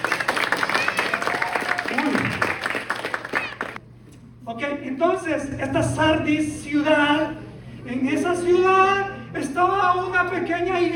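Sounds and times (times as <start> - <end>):
audience applause: 0.0 - 3.8
speech: 5.2 - 10.9.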